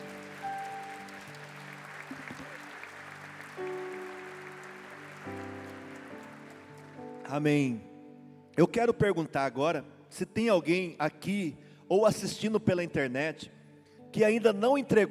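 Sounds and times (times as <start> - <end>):
audience applauding: 0.0 - 7.4
speech: 7.3 - 7.9, 8.6 - 15.1.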